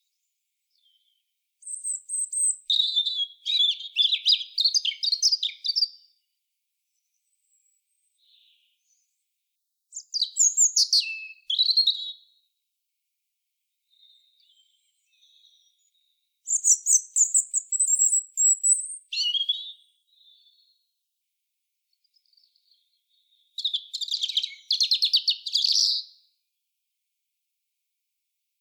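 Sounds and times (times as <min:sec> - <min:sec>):
European robin song: 0:00.0 - 0:06.3, 0:09.9 - 0:12.5, 0:13.8 - 0:21.0, 0:22.0 - 0:26.4.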